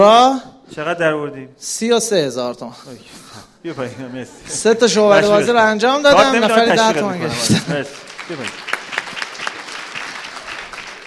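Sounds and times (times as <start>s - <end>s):
speech: 0.0s - 8.8s
laughter: 3.7s - 9.1s
audience applause: 6.6s - 11.0s.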